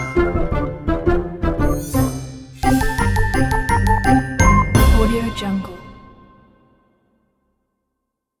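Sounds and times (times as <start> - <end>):
very crazy cartoon intro music: 0.0 - 6.6.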